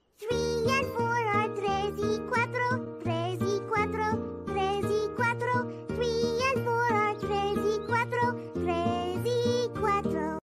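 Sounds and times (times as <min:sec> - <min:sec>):
person singing: 0:00.2 - 0:10.4.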